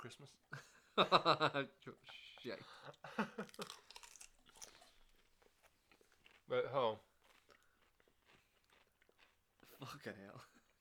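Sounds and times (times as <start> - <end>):
speech: 0.0 - 3.9, 6.5 - 7.1, 9.8 - 10.5
Texas barbecue Pringles crisps crunched and chewed: 3.4 - 10.0.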